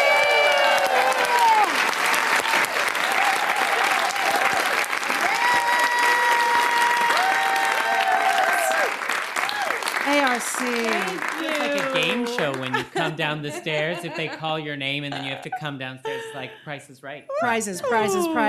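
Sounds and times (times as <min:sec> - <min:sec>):
crowd applause welcoming an opera singer: 0:00.0 - 0:16.5
crowd noise: 0:00.0 - 0:18.4
laughter: 0:10.9 - 0:18.4
speech: 0:12.0 - 0:18.4.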